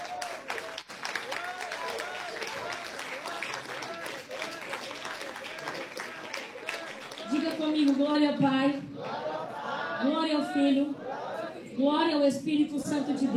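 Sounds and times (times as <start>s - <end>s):
audience applause: 0.0s - 8.2s
speech: 7.8s - 8.9s, 10.0s - 11.0s, 11.8s - 13.3s.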